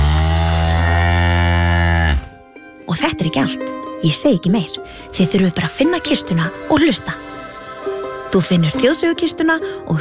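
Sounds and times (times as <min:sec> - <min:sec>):
cow mooing: 0:00.0 - 0:02.4
speech: 0:02.9 - 0:07.3, 0:08.3 - 0:09.9.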